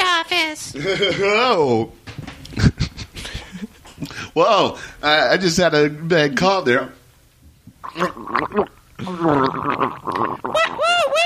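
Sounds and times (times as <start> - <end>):
speech: 0.7 - 2.0, 4.4 - 7.0, 7.9 - 11.2
gargling water at dentist: 7.7 - 11.2.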